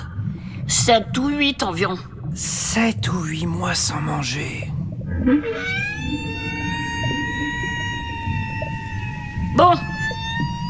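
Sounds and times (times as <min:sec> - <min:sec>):
speech: 0:00.7 - 0:06.4, 0:09.6 - 0:09.9
whale call: 0:05.1 - 0:10.6.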